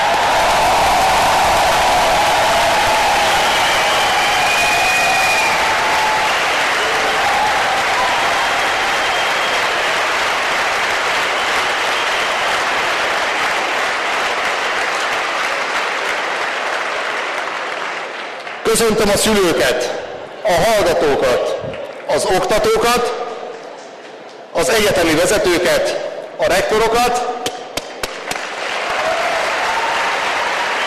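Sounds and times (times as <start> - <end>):
audience applause: 0.0 - 19.6, 28.0 - 30.8
speech: 18.7 - 23.2, 24.5 - 27.3.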